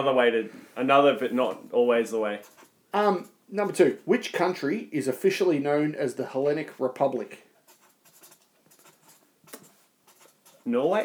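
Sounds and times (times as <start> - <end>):
speech: 0.0 - 7.5, 10.6 - 11.0
pen writing on paper during a pub-style quiz: 2.4 - 2.8, 7.7 - 10.7.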